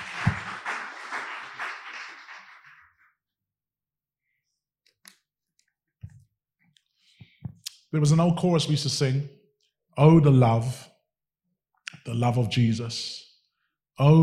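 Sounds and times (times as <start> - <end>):
audience clapping: 0.0 - 3.1
speech: 7.9 - 9.4, 10.0 - 10.9, 12.1 - 13.2, 14.0 - 14.2.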